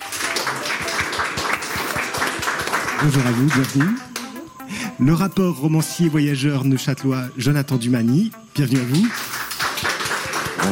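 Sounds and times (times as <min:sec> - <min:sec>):
audience applause welcoming a Vaudois poet at a literary festival: 0:00.0 - 0:04.0, 0:08.8 - 0:10.7
speech: 0:03.0 - 0:04.1, 0:05.0 - 0:09.3.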